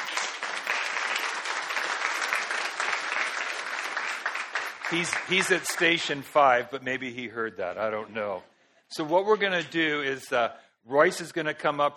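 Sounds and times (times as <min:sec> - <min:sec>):
audience clapping: 0:00.0 - 0:06.6
speech: 0:04.9 - 0:11.9.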